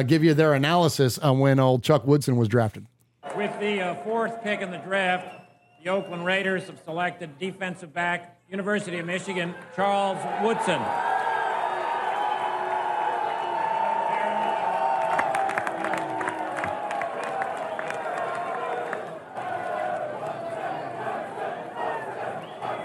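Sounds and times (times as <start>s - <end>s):
speech: 0.0s - 11.3s
football fans cheering a draft pick: 3.2s - 6.8s, 9.0s - 22.8s.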